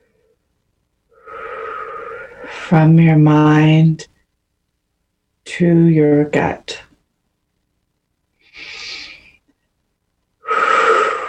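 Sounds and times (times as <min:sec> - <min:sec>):
slow deep breath: 0:01.1 - 0:02.7, 0:08.4 - 0:09.4, 0:10.4 - 0:11.2
speech: 0:02.7 - 0:04.1, 0:05.5 - 0:06.7.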